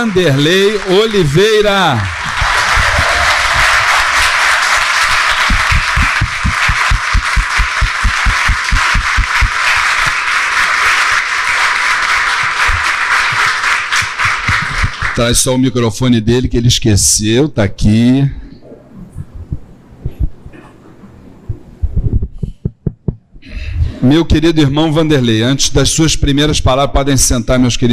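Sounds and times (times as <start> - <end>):
speech: 0.0 - 2.2, 15.2 - 18.4, 24.0 - 27.9
crowd applauding loudly in a standing ovation: 0.0 - 15.4
rhythmic low thumps of clapping or stamping in unison: 2.1 - 10.8, 12.3 - 13.4, 14.0 - 15.3, 19.0 - 20.6, 21.5 - 24.0.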